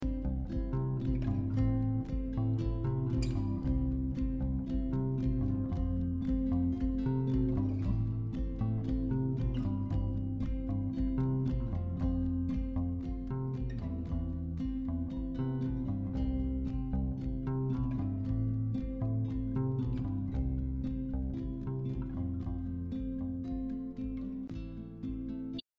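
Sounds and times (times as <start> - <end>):
music outdoors: 0.0 - 25.6.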